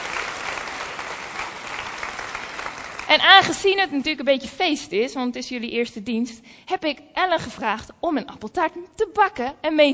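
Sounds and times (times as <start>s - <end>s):
audience clapping at a church's first service: 0.0s - 3.6s
speech: 3.1s - 9.9s.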